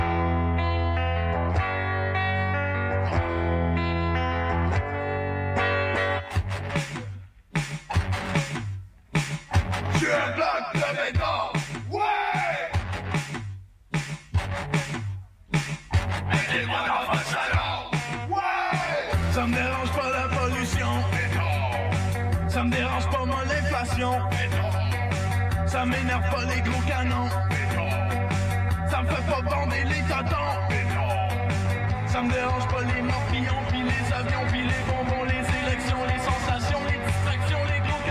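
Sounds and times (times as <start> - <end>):
loud rock song with heavily distorted electric guitars: 0.0 - 38.0
shouted vocal: 10.0 - 12.8, 16.3 - 19.3
speech: 25.8 - 27.5, 32.2 - 36.2.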